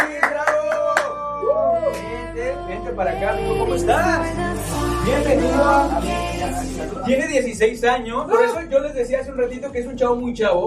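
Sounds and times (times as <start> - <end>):
audience clapping in rhythm: 0.0 - 1.2
speech: 2.9 - 10.6.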